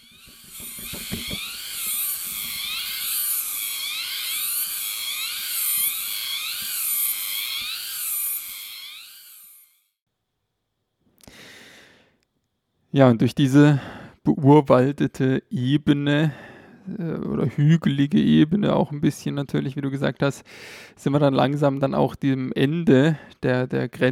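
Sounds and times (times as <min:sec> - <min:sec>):
alarm-like cicada buzzing in jungle: 0:00.0 - 0:09.8
speech: 0:13.0 - 0:24.0.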